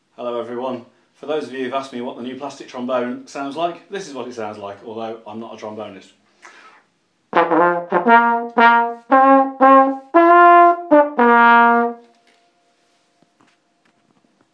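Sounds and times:
tuba playing: 7.3 - 12.1.

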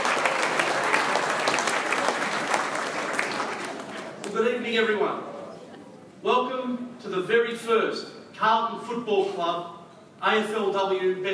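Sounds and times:
round of applause: 0.0 - 4.4
speech: 4.7 - 5.3, 7.0 - 11.3.

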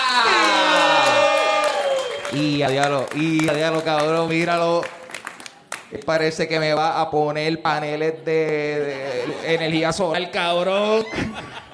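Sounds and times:
crowd cheering and shouting: 0.0 - 2.7
speech: 2.3 - 5.0, 5.9 - 11.5
laughter: 8.0 - 11.7.

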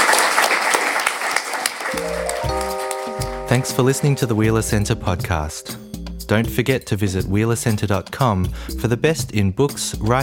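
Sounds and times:
audience applause: 0.0 - 4.1
speech: 3.5 - 10.2.

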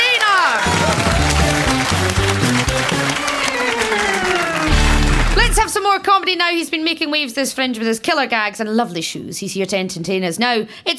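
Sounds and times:
audience applause: 0.0 - 5.7
speech: 6.3 - 10.9.

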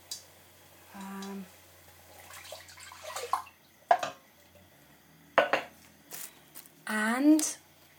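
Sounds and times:
coconut milk being poured into pot: 1.8 - 4.7.

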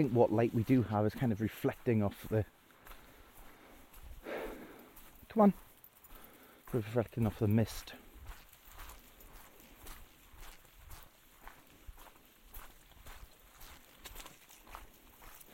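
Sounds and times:
speech: 0.0 - 2.6, 5.3 - 5.6, 6.7 - 8.0
footsteps walking onto a road in the mist: 0.0 - 15.5
hiss: 0.3 - 11.8.

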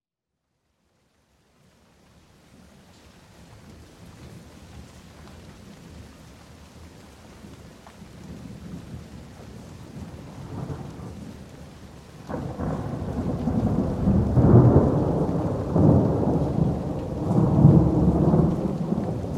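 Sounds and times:
thunderstorm in Boxted Hertfordshire: 8.0 - 19.3.

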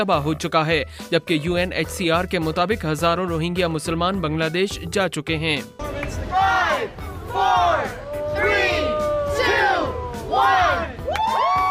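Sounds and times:
speech: 0.0 - 8.8
crowd counting down: 5.8 - 11.3.

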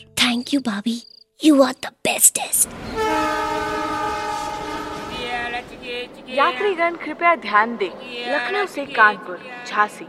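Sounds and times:
speech: 0.0 - 3.8, 5.8 - 10.0
Chhapra Mumbai Jan Sadharan Express departing platform 3: 2.6 - 10.0.

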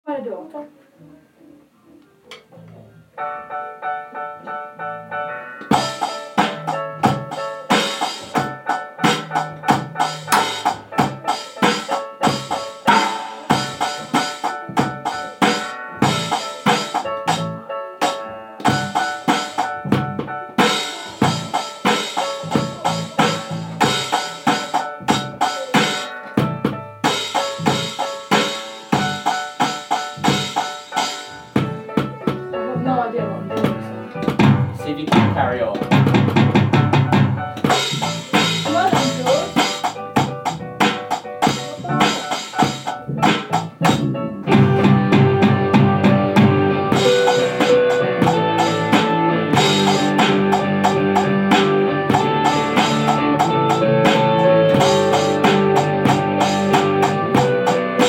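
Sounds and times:
very basic drums: 5.6 - 32.6, 33.5 - 58.0.

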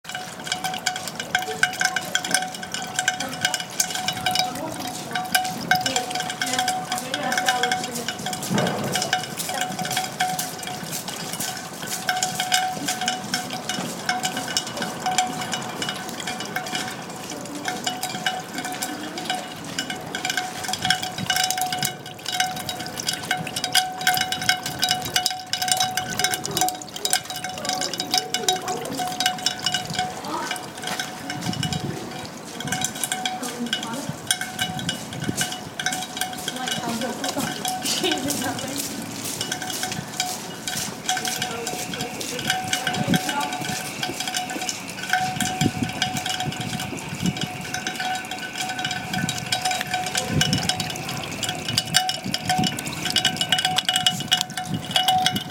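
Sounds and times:
raindrops: 0.0 - 55.5.

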